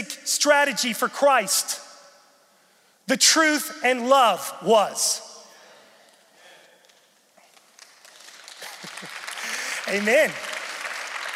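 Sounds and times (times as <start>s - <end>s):
speech: 0.3s - 1.8s, 3.1s - 5.3s, 9.9s - 10.5s
church audience clapping: 7.4s - 11.3s.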